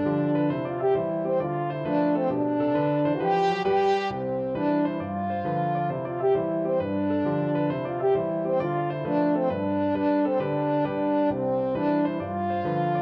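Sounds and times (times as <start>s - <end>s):
French horn playing a kolo folk dance tune: 0.0s - 13.0s.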